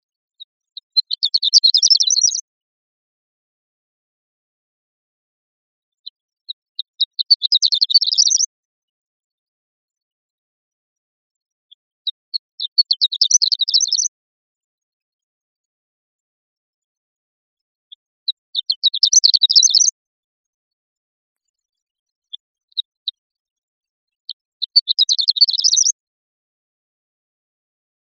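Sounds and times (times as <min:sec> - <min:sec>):
bird twittering chirps: 0:00.7 - 0:02.4, 0:06.8 - 0:08.5, 0:11.7 - 0:14.1, 0:17.9 - 0:19.9, 0:24.6 - 0:26.0.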